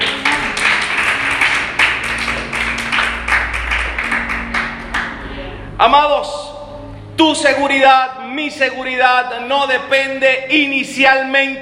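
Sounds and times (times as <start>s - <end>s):
crowd clapping: 0.0s - 5.4s
speech: 5.8s - 6.4s, 7.2s - 11.6s.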